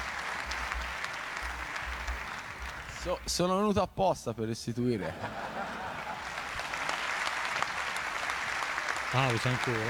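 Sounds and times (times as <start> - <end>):
audience applause: 0.0 - 3.2, 5.4 - 9.8
speech: 3.0 - 5.4, 9.1 - 9.8
laughter: 4.9 - 7.0.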